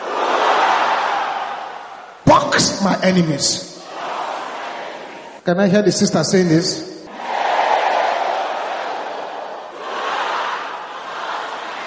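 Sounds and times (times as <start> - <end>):
audience roaring: 0.0 - 2.3, 3.8 - 5.4, 7.1 - 11.8
speech: 2.6 - 3.7, 5.5 - 6.9.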